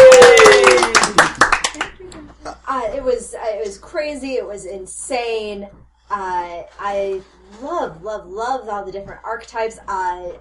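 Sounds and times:
round of applause: 0.0s - 2.0s
speech: 3.8s - 10.3s.

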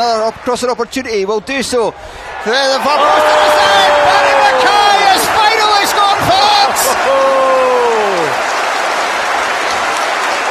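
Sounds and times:
speech: 0.0s - 5.4s
football crowd roaring after a goal: 2.1s - 10.5s.

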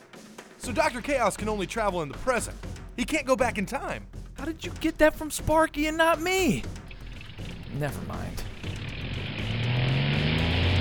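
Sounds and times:
speech: 0.6s - 6.8s, 7.7s - 8.4s
failing airplane engine: 6.5s - 10.7s.

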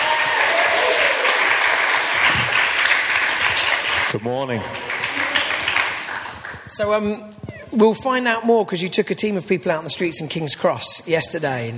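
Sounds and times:
audience applause: 0.0s - 6.8s
speech: 4.1s - 4.9s, 6.8s - 11.7s.

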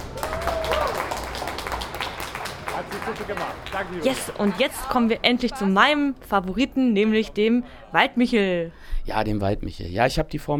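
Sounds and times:
audience cheers and whoops: 0.0s - 1.8s
audience applause: 0.0s - 5.5s
speech: 2.9s - 10.5s.

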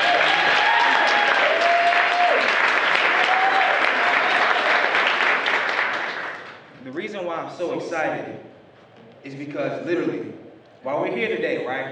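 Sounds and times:
faint cheers and whoops: 0.0s - 4.9s
crowd applauding: 0.0s - 6.7s
speech: 7.5s - 8.6s, 9.2s - 11.9s.

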